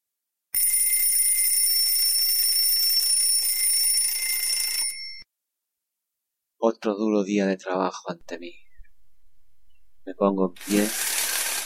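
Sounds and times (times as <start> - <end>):
alarm clock ringing: 0.6 - 5.2
speech: 6.7 - 8.6, 10.1 - 11.1.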